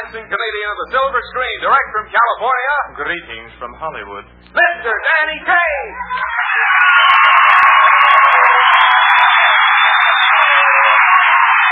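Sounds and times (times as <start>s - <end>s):
speech: 0.1s - 7.5s
audience applause: 6.3s - 11.7s.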